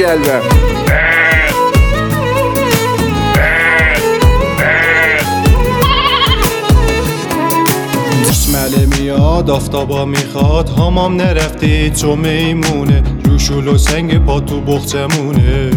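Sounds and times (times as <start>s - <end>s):
speech: 0.0s - 1.0s, 8.7s - 15.7s
busy rhythmic musical backing: 0.0s - 15.7s
lamb bleating: 0.8s - 1.6s, 3.4s - 6.5s.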